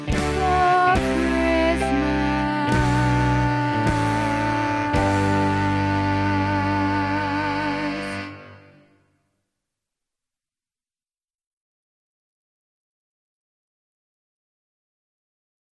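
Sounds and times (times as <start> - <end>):
tenor singing: 0.0 - 8.8.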